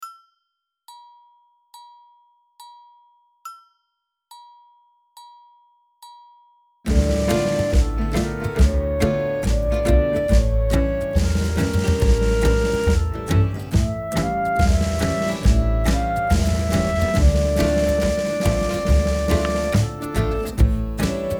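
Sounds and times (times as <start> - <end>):
oriental-style music: 6.9 - 21.3.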